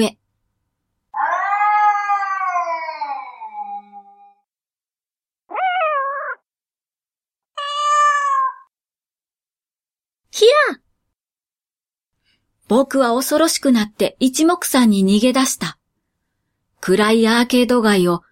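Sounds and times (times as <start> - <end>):
speech: 0.0 - 0.2, 12.7 - 15.8, 16.8 - 18.3
cat meowing: 1.2 - 4.4, 5.5 - 6.4, 7.6 - 8.7.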